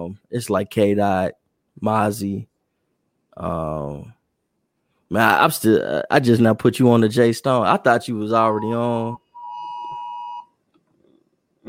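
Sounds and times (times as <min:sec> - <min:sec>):
speech: 0:00.0 - 0:02.5, 0:03.4 - 0:04.2, 0:05.1 - 0:09.2
phone weather alert tone: 0:08.5 - 0:10.5.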